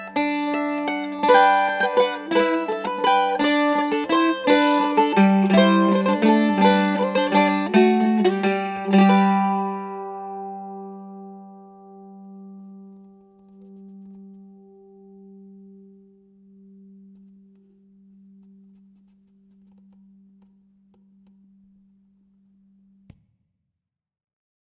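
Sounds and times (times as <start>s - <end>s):
mandolin: 0.0s - 16.0s.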